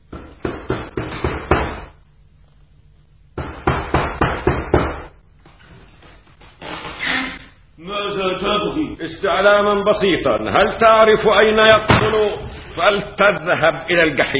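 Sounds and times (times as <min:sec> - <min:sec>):
passerby knocking on a house door: 0:00.1 - 0:01.9, 0:03.4 - 0:05.1
speech: 0:07.8 - 0:14.3.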